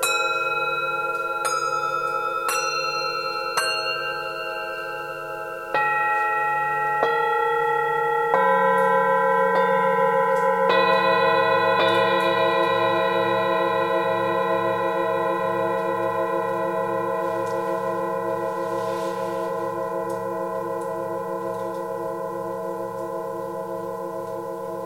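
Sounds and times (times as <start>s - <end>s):
Tibetan singing bowls ringing in a cave: 0.0s - 24.8s
low hum: 10.2s - 24.8s.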